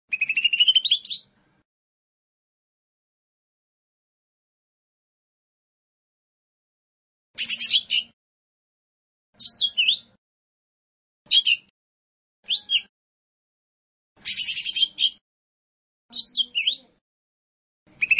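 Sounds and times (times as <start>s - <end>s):
bird song: 0.1s - 1.6s, 7.4s - 8.2s, 9.4s - 10.2s, 11.3s - 11.7s, 12.4s - 12.9s, 14.2s - 15.2s, 16.1s - 17.0s, 17.9s - 18.1s.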